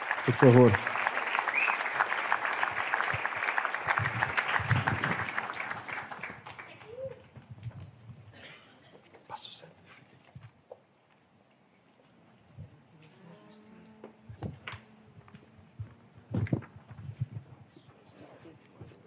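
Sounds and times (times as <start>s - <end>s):
audience applause welcoming performers: 0.0s - 7.3s.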